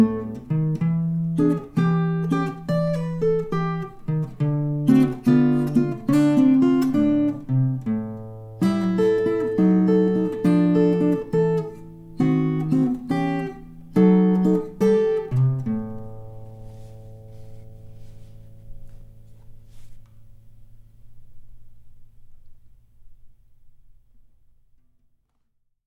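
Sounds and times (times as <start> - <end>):
blues music: 0.0 - 19.1.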